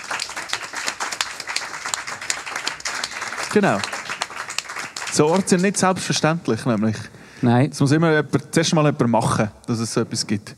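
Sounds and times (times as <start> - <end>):
audience applause: 0.0 - 6.3
speech: 3.5 - 3.9, 5.2 - 10.5.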